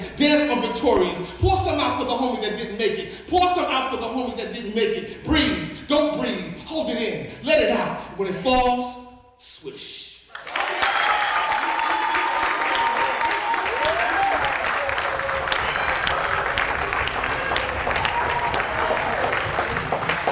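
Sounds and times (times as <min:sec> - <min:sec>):
speech: 0:00.2 - 0:09.9
crowd cheering: 0:10.3 - 0:20.3
large audience applause: 0:10.3 - 0:20.3.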